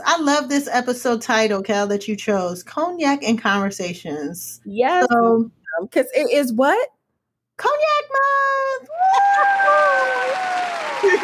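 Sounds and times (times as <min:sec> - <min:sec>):
speech: 0:00.2 - 0:07.0, 0:07.6 - 0:11.2
applause sound effect: 0:09.3 - 0:11.2.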